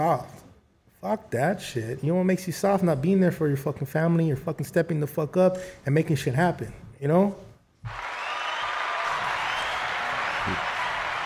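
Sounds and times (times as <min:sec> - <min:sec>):
speech: 0:00.0 - 0:00.4, 0:01.0 - 0:08.0
hand claps: 0:07.9 - 0:11.2.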